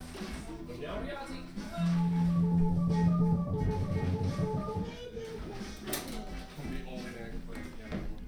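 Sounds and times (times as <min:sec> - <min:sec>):
person messing with an organ: 0:00.9 - 0:07.1.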